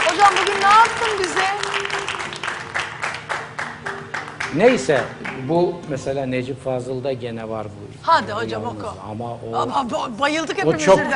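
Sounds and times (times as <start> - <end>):
audience applause: 0.0 - 5.5
speech: 0.2 - 1.4, 4.6 - 11.1.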